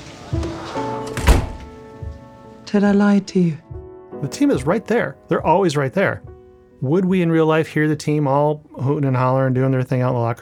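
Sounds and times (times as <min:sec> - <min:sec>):
office door shutting: 0:00.0 - 0:01.8
speech: 0:02.7 - 0:03.6, 0:04.2 - 0:10.4.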